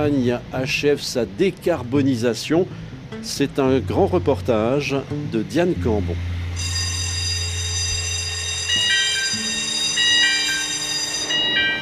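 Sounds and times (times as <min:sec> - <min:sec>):
speech: 0:00.0 - 0:06.7
mine lift warning siren: 0:06.5 - 0:11.8.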